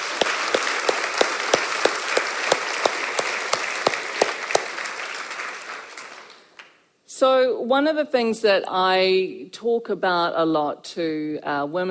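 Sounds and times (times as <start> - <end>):
audience applause: 0.0 - 6.5
sharp rhythmic clap: 0.0 - 6.8
speech: 7.2 - 11.8.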